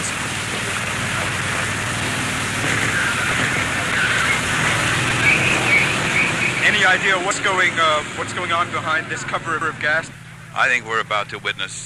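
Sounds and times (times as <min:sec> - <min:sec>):
large army helicopter flying overhead: 0:00.0 - 0:11.8
speech: 0:06.9 - 0:11.8.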